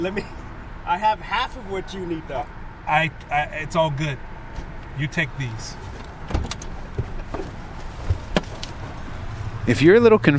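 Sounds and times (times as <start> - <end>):
speech: 0.0 - 6.0, 9.7 - 10.3
police cruiser door clunks and rattles in a gas station parking lot: 5.8 - 9.6.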